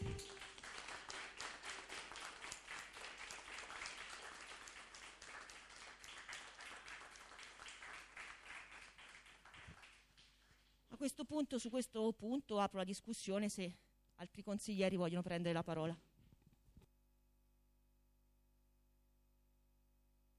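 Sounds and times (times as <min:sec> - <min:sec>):
council applauding: 0:00.0 - 0:10.8
speech: 0:11.0 - 0:16.1.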